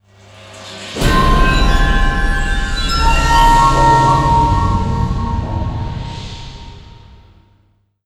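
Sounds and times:
mission complete jingle: 1.0 - 7.2.

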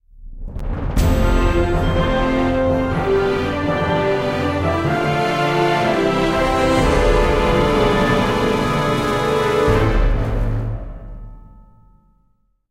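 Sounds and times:
action music sting: 0.2 - 11.8.

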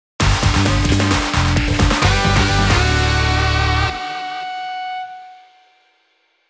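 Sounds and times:
mission start cue: 0.2 - 4.8.

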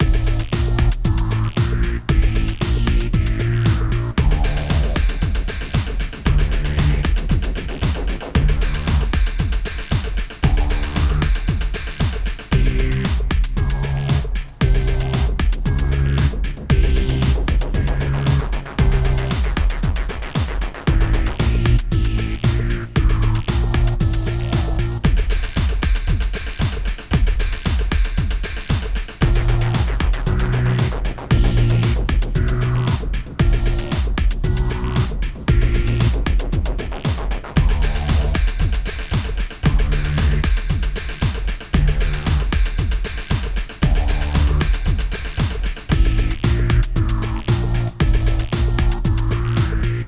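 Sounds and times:
music loop: 0.0 - 50.0.

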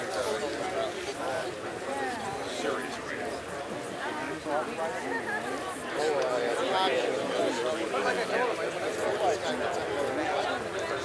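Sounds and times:
crowd in a mansion: 0.0 - 11.0.

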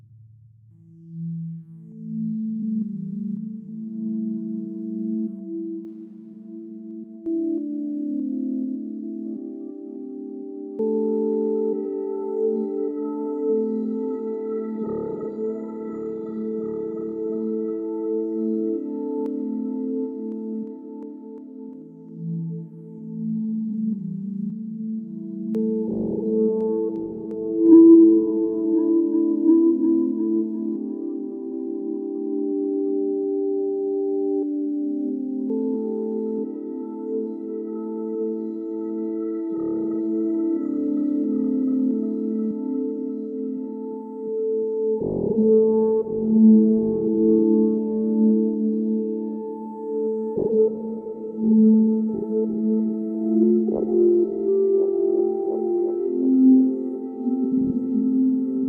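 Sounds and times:
in-game garden synth pads: 1.0 - 58.6.

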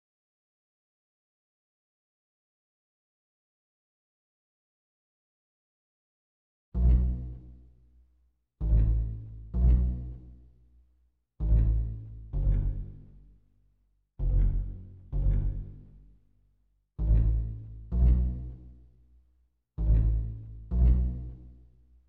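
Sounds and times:
pizzicato strings: 6.8 - 7.8, 8.6 - 10.6, 11.4 - 13.4, 14.2 - 16.2, 17.0 - 19.0, 19.8 - 21.7.

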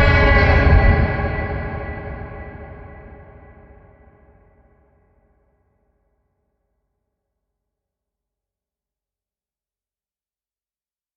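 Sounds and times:
well horror sound: 0.0 - 4.4.

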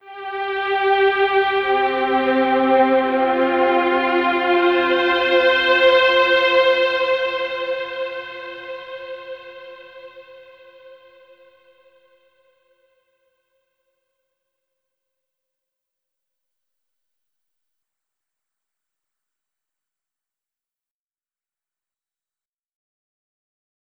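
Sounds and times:
overlay tone: 0.0 - 11.0.

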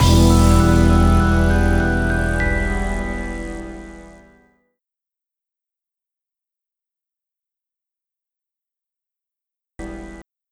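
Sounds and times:
jingle: 0.0 - 4.3.

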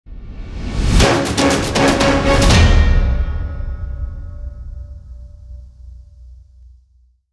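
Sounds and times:
battle victory intro music: 0.3 - 5.4.

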